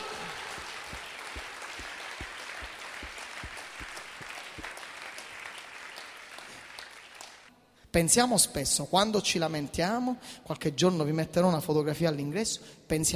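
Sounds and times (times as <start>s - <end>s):
audience applause: 0.0s - 7.5s
speech: 7.9s - 13.1s.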